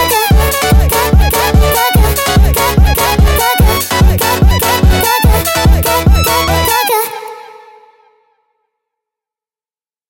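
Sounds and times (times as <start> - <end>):
sped up montagem music: 0.0 - 7.9.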